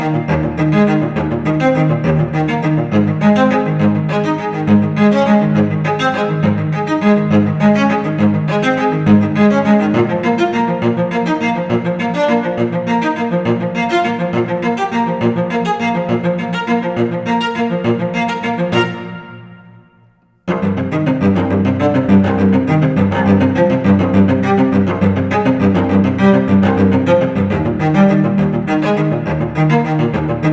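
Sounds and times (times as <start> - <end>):
classical cello solo: 0.0 - 19.9, 20.5 - 30.5.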